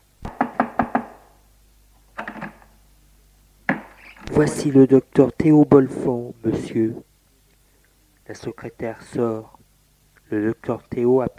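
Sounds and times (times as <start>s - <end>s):
knocking on a door: 0.3s - 1.2s
speech: 4.3s - 7.1s, 8.3s - 9.6s, 10.3s - 11.3s.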